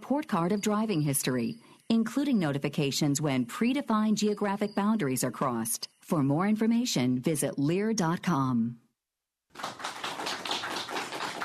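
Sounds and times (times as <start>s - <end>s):
speech: 0.1s - 8.8s, 9.5s - 9.9s
crowd applause: 9.6s - 11.4s.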